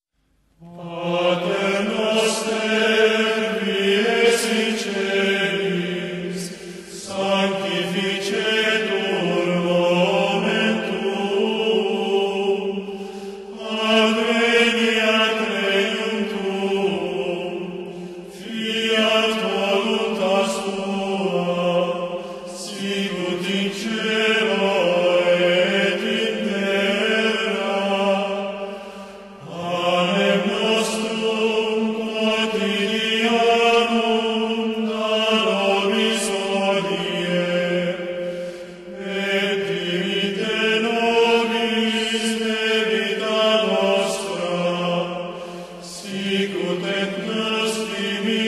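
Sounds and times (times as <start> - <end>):
Latin hymn: 0.6 - 48.4.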